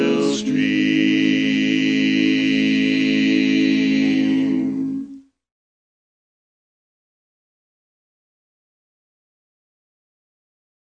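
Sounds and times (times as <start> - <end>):
barbershop harmony singing with bass part: 0.0 - 5.0.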